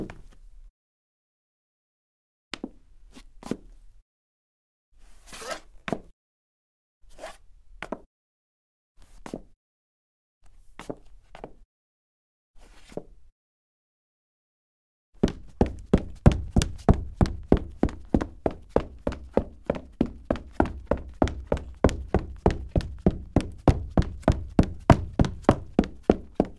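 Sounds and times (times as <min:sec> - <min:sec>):
foley footsteps on hard wood: 0:15.2 - 0:26.5.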